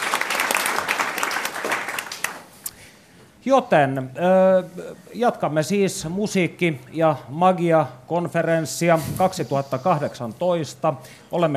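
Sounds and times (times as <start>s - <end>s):
audience applause: 0.0s - 2.5s
speech: 3.4s - 11.5s.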